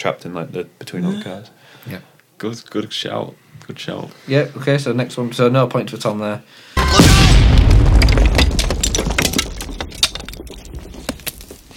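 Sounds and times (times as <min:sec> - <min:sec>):
speech: 0:00.0 - 0:07.4
explosion blowing up a toy action figure: 0:06.8 - 0:11.0
scattered crackles and small pops of debris pattering down: 0:06.8 - 0:11.7.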